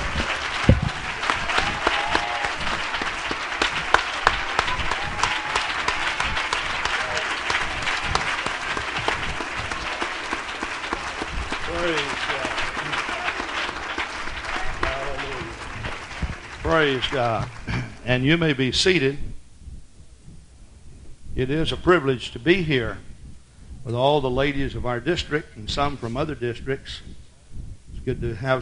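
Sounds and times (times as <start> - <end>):
scattered voices and faint cheering: 0.0 - 17.6
audience clapping hands: 0.0 - 19.0
speech: 16.8 - 19.3, 21.4 - 23.1, 23.9 - 27.1, 28.0 - 28.6.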